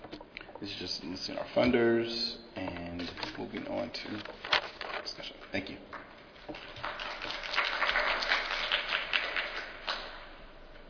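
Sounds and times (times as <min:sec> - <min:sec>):
speech: 0:00.6 - 0:06.6
audience applause after a talk: 0:06.6 - 0:10.2.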